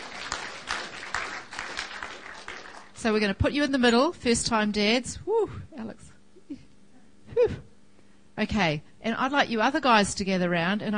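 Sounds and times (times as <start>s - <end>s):
audience clapping for first-time dads at a gathering: 0.0s - 3.0s
speech: 3.0s - 6.6s, 7.4s - 7.7s, 8.4s - 10.9s.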